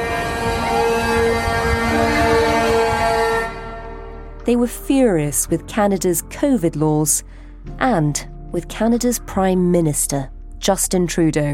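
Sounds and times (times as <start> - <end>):
protest truck horns honking: 0.0 - 4.4
speech: 4.5 - 11.5.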